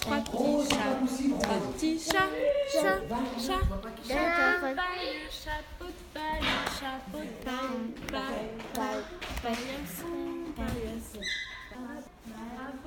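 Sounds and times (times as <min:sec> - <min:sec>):
hand clapping games: 0:00.0 - 0:02.5, 0:06.4 - 0:10.8
voice games: 0:00.0 - 0:12.8.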